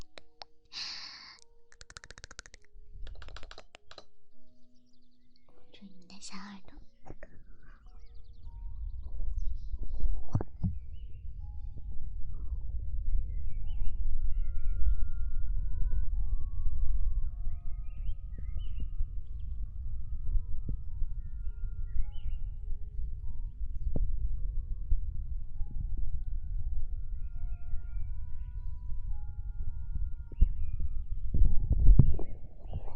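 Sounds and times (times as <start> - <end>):
breathy mouth noises: 0.0 - 4.0
ASMR ear-eating wet crackling mouth smacks: 1.7 - 4.1
low rumble: 6.7 - 32.9.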